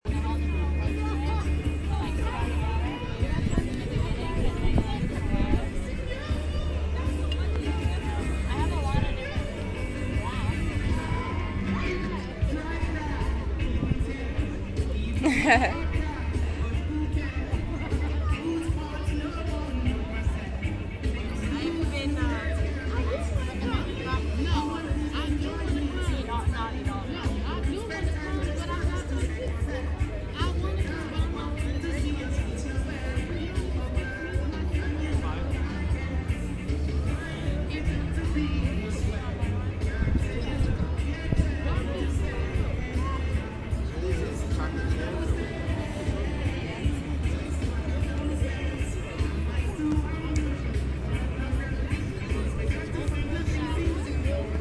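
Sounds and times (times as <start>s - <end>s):
reggae music: 0.0s - 54.6s
laughter: 15.0s - 16.5s.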